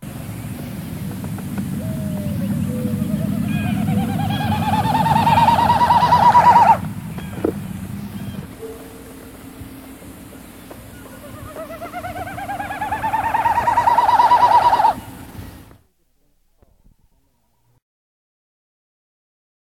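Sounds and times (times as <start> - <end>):
low rumbling background: 0.0 - 17.8
Wilson's snipe winnowing: 0.5 - 15.6.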